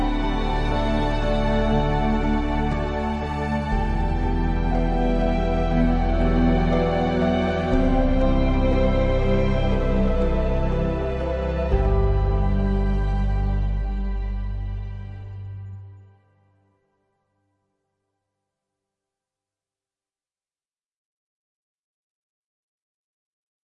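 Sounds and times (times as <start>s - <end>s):
ambient music: 0.0s - 16.8s.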